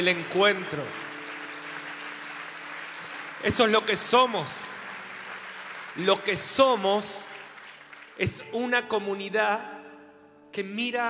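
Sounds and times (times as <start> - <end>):
speech: 0.0 - 1.0, 3.4 - 4.8, 6.0 - 7.3, 8.2 - 9.8, 10.5 - 11.0
audience applause: 0.0 - 8.3.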